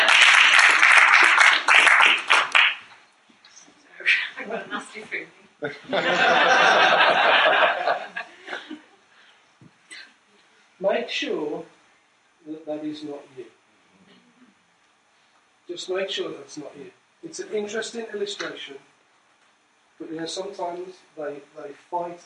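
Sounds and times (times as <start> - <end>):
audience applause: 0.0 - 2.9
speech: 5.0 - 6.7, 15.8 - 18.9, 20.0 - 22.2
laughter: 5.6 - 9.0.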